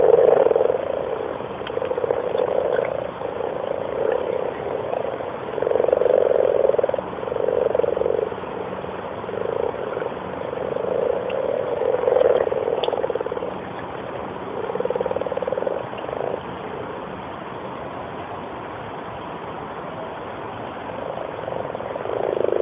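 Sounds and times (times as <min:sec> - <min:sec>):
frogs in a pond: 0:00.0 - 0:22.6.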